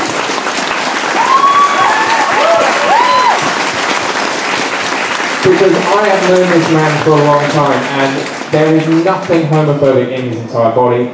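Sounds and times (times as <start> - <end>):
crowd applauding: 0.0 - 10.4
whoops: 1.1 - 3.6
speech: 5.5 - 11.1.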